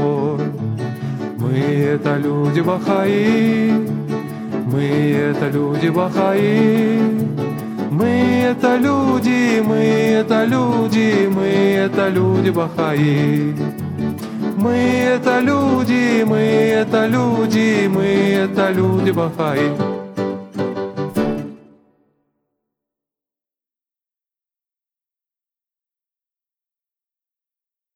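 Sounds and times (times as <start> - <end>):
Russian song: 0.0 - 22.2.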